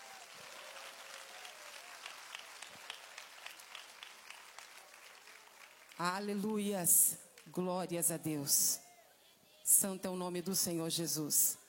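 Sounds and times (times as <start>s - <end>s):
audience applauding: 0.0s - 6.4s
speech: 6.0s - 8.9s, 9.8s - 11.6s.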